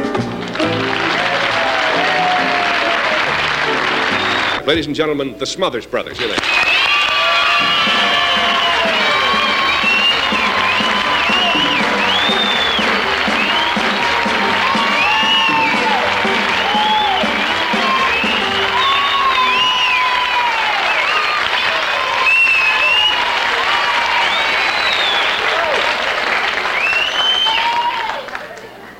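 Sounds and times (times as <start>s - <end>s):
large audience applause: 0.1s - 4.6s, 6.2s - 28.9s
excited shouts and whoops: 1.0s - 3.2s, 6.4s - 25.9s, 27.2s - 28.4s
speech: 4.7s - 6.8s.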